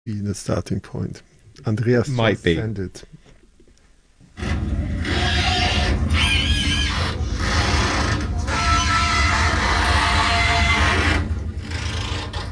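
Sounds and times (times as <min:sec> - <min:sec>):
speech: 0:00.0 - 0:03.2
moving bridge over the Elbe River creaking and grinding: 0:04.3 - 0:12.5.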